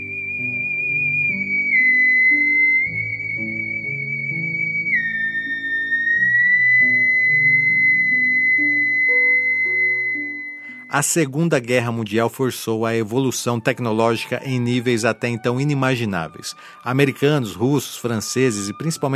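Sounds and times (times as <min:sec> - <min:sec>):
theremin being played: 0:00.0 - 0:11.1, 0:13.0 - 0:19.1
speech: 0:11.0 - 0:19.1.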